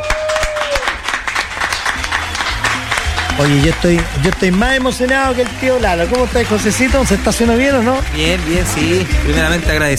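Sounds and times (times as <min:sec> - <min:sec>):
crowd applauding: 0:00.0 - 0:09.9
speech: 0:03.4 - 0:09.9.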